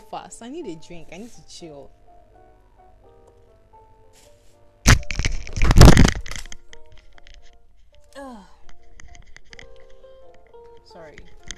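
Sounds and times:
speech: 0:00.1 - 0:02.0, 0:08.2 - 0:08.6, 0:10.9 - 0:11.4
phone falling down: 0:04.9 - 0:07.4.

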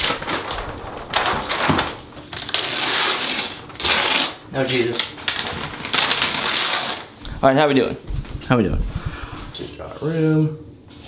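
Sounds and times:
paper chart crinkling and rustling as it is handled: 0:00.0 - 0:07.2
speech: 0:04.6 - 0:05.6, 0:07.4 - 0:08.9, 0:10.0 - 0:10.6.

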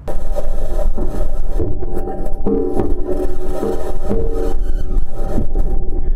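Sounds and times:
Mars rover metal wheels driving over rocks: 0:00.0 - 0:06.1.

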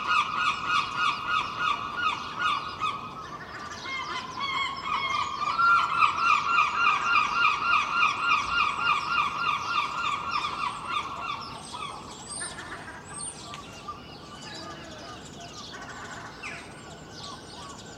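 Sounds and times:
bird chirps and squeals: 0:00.0 - 0:17.9
seagulls calling: 0:00.0 - 0:17.9.

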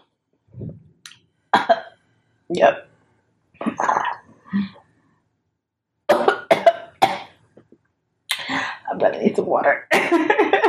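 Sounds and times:
speech: 0:01.5 - 0:01.8, 0:02.5 - 0:02.9, 0:04.5 - 0:04.8, 0:09.1 - 0:10.6
person coughing after inhaling smoke: 0:06.1 - 0:07.3, 0:09.9 - 0:10.6.

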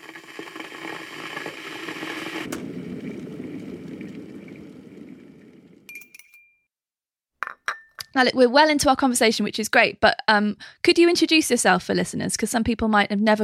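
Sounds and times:
hot water poured onto tea bags in mug: 0:00.0 - 0:05.9
speech: 0:08.2 - 0:13.4.

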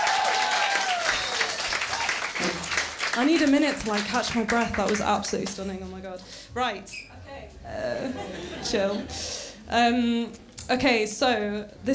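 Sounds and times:
crowd cheering or whistling: 0:00.0 - 0:02.7
audience applause: 0:00.0 - 0:05.6
speech: 0:03.2 - 0:11.9
laughter: 0:07.8 - 0:09.4.

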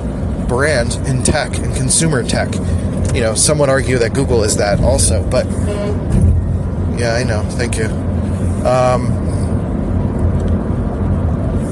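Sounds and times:
road and engine rumble: 0:00.0 - 0:11.6
speech: 0:00.5 - 0:06.0, 0:07.0 - 0:09.2
car horn honk: 0:05.4 - 0:06.5.

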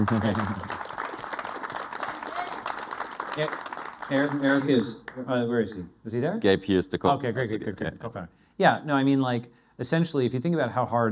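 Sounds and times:
speech: 0:00.0 - 0:00.7, 0:03.4 - 0:11.1
audience clapping: 0:00.0 - 0:05.3.

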